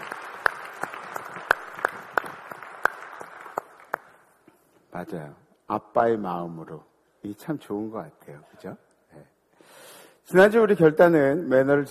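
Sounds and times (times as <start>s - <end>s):
audience applause: 0.0s - 4.3s
speech: 5.0s - 8.9s, 10.3s - 11.8s.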